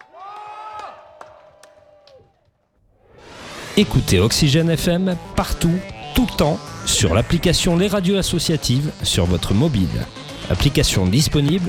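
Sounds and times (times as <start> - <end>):
crowd cheering and whooping: 0.0 - 2.5
scattered clapping: 0.0 - 2.6
speech: 3.8 - 11.6.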